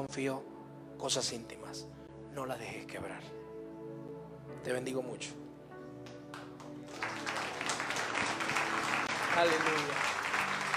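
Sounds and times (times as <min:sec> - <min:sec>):
speech: 0:00.0 - 0:03.4, 0:04.6 - 0:05.4, 0:09.4 - 0:10.1
audience applause: 0:06.3 - 0:10.7.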